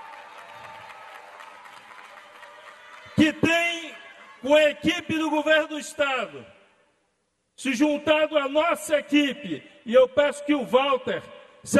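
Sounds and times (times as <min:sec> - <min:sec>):
crowd applause for the governor: 0:00.0 - 0:03.4
speech: 0:03.2 - 0:03.5, 0:04.4 - 0:06.6, 0:07.6 - 0:11.7.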